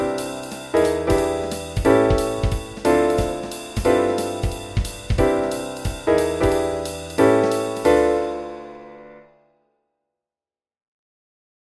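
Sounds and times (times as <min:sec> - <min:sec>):
walking bass backing track: 0:00.8 - 0:07.7.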